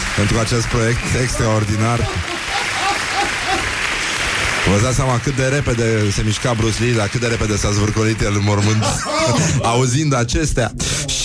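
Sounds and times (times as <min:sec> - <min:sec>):
audience applause: 0:00.0 - 0:09.6
speech: 0:00.2 - 0:02.4, 0:04.6 - 0:11.2
laughter: 0:01.1 - 0:03.9, 0:08.4 - 0:10.0
faint voices and whoops: 0:01.3 - 0:03.8.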